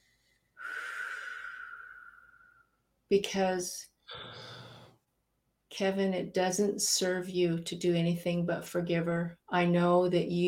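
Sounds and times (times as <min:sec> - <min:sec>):
big deep breath: 0:00.0 - 0:02.8, 0:04.1 - 0:05.0
speech: 0:03.1 - 0:04.5, 0:05.8 - 0:10.4.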